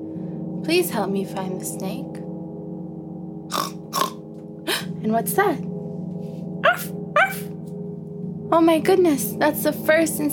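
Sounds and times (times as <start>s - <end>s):
steady low hum: 0.0s - 10.3s
speech: 0.6s - 2.3s, 5.0s - 5.7s, 6.7s - 7.5s, 8.5s - 10.3s
dog barks with upward yelp: 6.6s - 7.5s.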